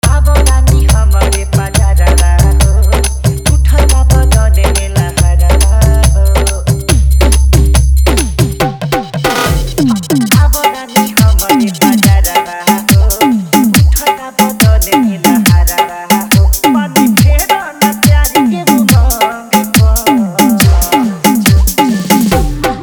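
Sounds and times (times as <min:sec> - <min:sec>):
hard Bhojpuri DJ song: 0:00.0 - 0:22.8.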